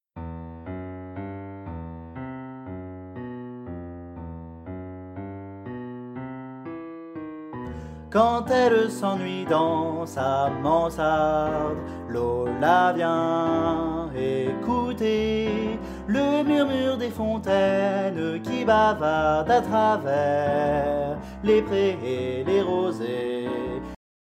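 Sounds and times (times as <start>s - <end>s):
soprano singing: 8.1s - 24.0s.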